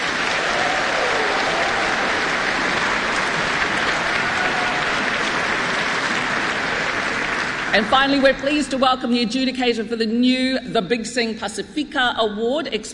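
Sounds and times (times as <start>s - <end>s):
audience applause at a choral singing competition: 0.0s - 8.6s
speech: 7.7s - 12.9s.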